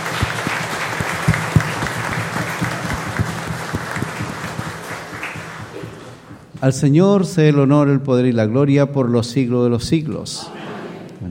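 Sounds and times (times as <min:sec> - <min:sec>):
audience applauding: 0:00.0 - 0:06.5
speech: 0:06.6 - 0:11.2.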